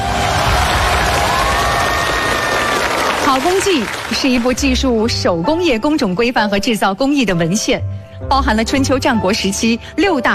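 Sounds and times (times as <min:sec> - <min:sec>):
audience applause: 0:00.0 - 0:04.6
speech: 0:03.4 - 0:10.3.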